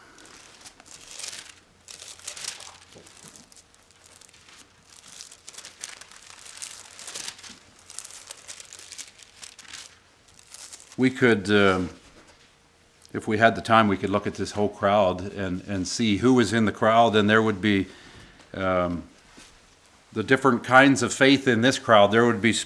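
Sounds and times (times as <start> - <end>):
thin Bible pages being turned: 0.0 - 12.5
speech: 11.0 - 12.0, 13.2 - 19.1, 20.2 - 22.6.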